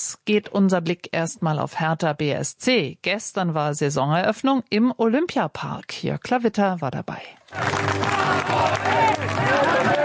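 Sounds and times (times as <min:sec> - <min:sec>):
speech: 0:00.0 - 0:09.9
clapping: 0:07.5 - 0:10.0
crowd cheering for the Hertha BSC team arrival at Olympiapark: 0:07.6 - 0:10.0.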